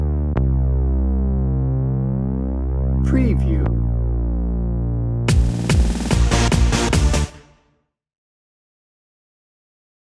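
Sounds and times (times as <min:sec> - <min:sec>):
extreme action music: 0:00.2 - 0:07.6.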